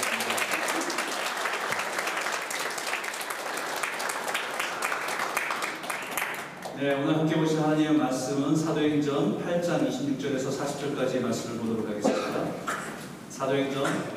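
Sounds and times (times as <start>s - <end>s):
sustained applause from a large audience: 0.0s - 6.8s
speech: 6.8s - 12.7s, 13.4s - 14.1s.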